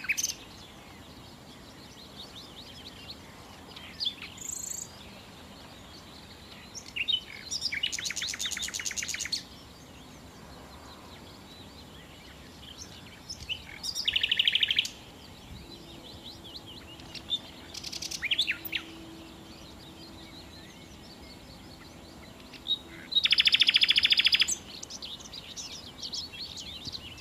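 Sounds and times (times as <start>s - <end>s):
common nightingale singing: 0.0s - 27.1s
other birds chirping: 0.0s - 27.1s.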